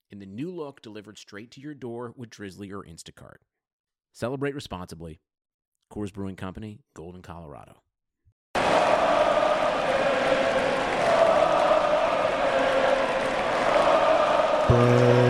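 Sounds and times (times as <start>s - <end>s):
speech: 0.1s - 3.6s, 4.2s - 5.3s, 5.9s - 7.9s, 14.7s - 15.2s
large arena crowd roaring and cheering: 8.6s - 15.2s
horn-like tone: 14.6s - 15.2s.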